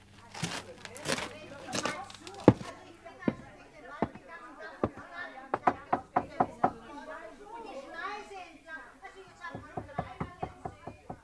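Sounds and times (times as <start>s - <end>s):
faint murmuring voices: 0.1s - 11.2s
knocking on the front door of an old half-timbered house: 4.8s - 6.8s, 9.5s - 11.2s.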